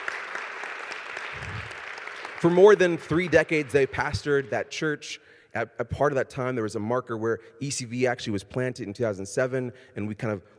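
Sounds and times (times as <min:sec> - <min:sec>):
thunderous round of applause: 0:00.0 - 0:04.4
speech: 0:02.4 - 0:10.5.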